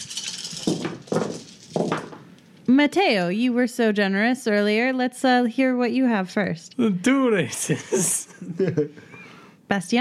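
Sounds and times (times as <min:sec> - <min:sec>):
dice rattling and clattering on a hard surface: 0:00.0 - 0:02.2
speech: 0:02.7 - 0:10.0.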